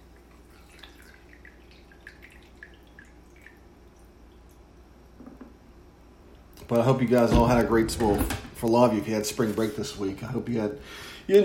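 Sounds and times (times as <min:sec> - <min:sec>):
coffee being poured into a cup: 0:00.1 - 0:04.6
speech: 0:06.7 - 0:11.4.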